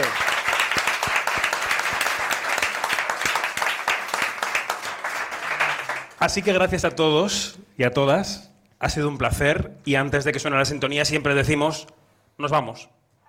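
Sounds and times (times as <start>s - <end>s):
audience applause: 0.0s - 6.2s
speech: 6.2s - 13.0s.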